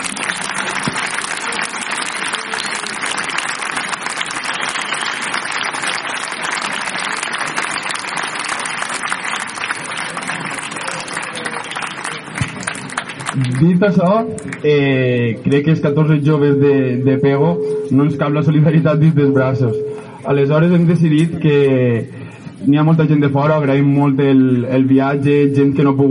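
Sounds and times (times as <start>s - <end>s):
crowd applause in a town square: 0.0s - 13.7s
speech: 13.6s - 26.0s.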